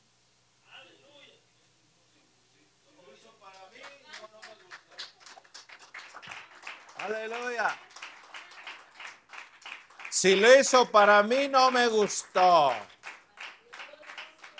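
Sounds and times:
audience applause: 0:03.7 - 0:14.5
speech: 0:07.1 - 0:07.9, 0:10.2 - 0:12.9.

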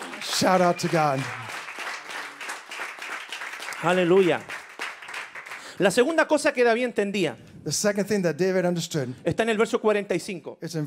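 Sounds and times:
audience applauding: 0:00.0 - 0:06.2
speech: 0:00.4 - 0:01.4, 0:03.8 - 0:04.6, 0:05.8 - 0:10.8.

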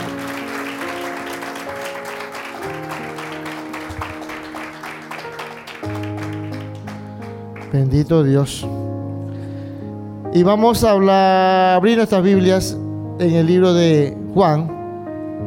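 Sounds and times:
audience applauding: 0:00.0 - 0:08.0
speech: 0:07.7 - 0:08.8, 0:10.3 - 0:14.8.

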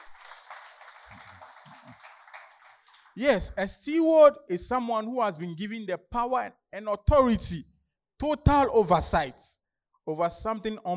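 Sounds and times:
audience clapping: 0:00.0 - 0:03.6
speech: 0:03.2 - 0:10.9.

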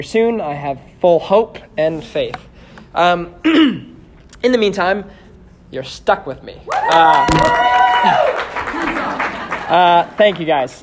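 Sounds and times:
speech: 0:00.0 - 0:08.6, 0:09.7 - 0:10.8
crowd applauding: 0:06.7 - 0:10.6.

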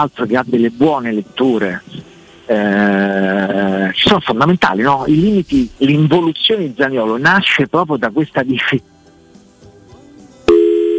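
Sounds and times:
speech: 0:00.0 - 0:08.9
telephone busy tone after a dropped phone call: 0:10.5 - 0:10.9.

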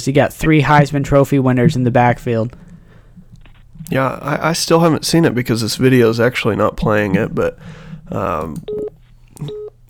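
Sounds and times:
speech: 0:00.0 - 0:02.6, 0:03.8 - 0:09.8
mobile phone tones: 0:08.6 - 0:09.8.

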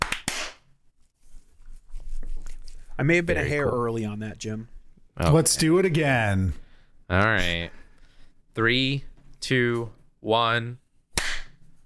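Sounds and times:
hand claps for recording sync: 0:00.0 - 0:00.7, 0:11.2 - 0:11.6
speech: 0:03.0 - 0:07.8, 0:08.6 - 0:10.8.

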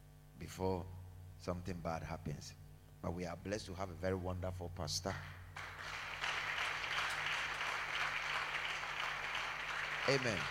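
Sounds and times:
speech: 0:00.5 - 0:05.4, 0:10.1 - 0:10.4
audience clapping: 0:05.2 - 0:10.4.

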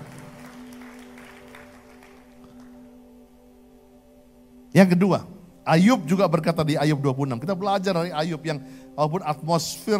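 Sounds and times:
audience applause: 0:00.0 - 0:02.9
speech: 0:04.7 - 0:09.9.

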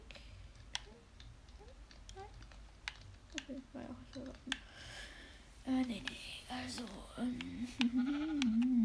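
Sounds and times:
speech: 0:03.8 - 0:04.6, 0:05.7 - 0:08.7
video game sheep bleating: 0:07.8 - 0:08.6.

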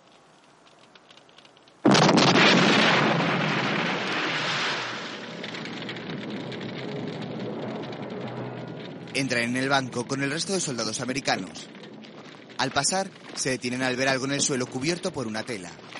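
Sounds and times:
tank turret gun blasting a hole in a bank door: 0:01.8 - 0:11.6
speech: 0:09.2 - 0:11.8, 0:12.6 - 0:15.9.

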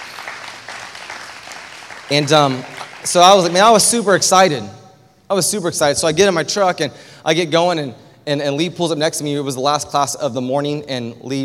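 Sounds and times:
audience applause: 0:00.0 - 0:03.8
speech: 0:02.1 - 0:11.4.

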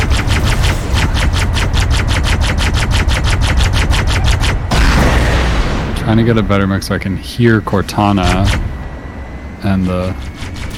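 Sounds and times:
automatic gunfire in the Halo video game: 0:00.0 - 0:05.5
speech: 0:06.1 - 0:08.8, 0:09.6 - 0:10.3.

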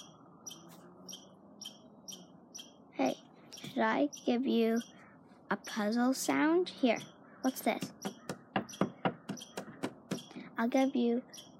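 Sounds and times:
birds chirping: 0:00.0 - 0:11.5
speech: 0:03.8 - 0:08.0, 0:10.6 - 0:11.5.

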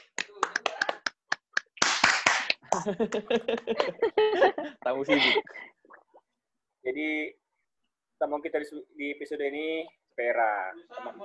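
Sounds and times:
people clapping: 0:00.0 - 0:04.1
laughter: 0:02.6 - 0:05.6
speech: 0:02.7 - 0:05.8, 0:06.8 - 0:07.4, 0:08.2 - 0:11.2.

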